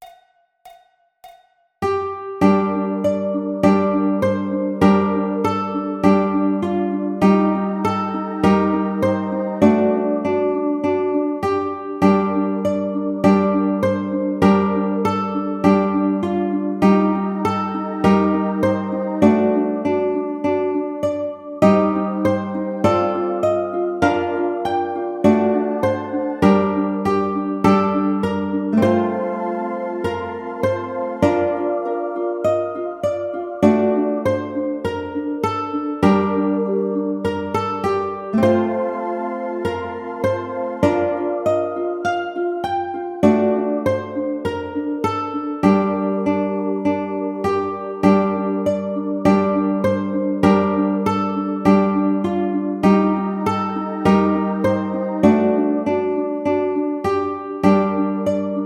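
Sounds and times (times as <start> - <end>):
ukulele: 0.0 - 58.6.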